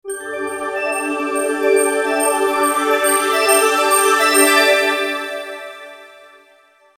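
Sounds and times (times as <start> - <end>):
intro music: 0.0 - 5.9.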